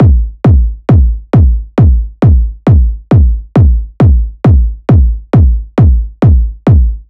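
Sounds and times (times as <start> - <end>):
techno kick drum loop at 135 bpm: 0.0 - 7.0.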